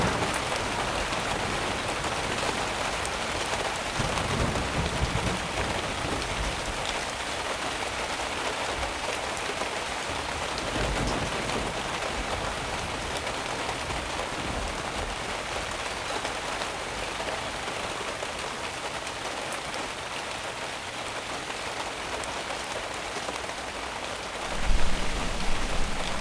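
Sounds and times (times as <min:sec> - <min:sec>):
severe thunderstorm: 0:00.0 - 0:26.2.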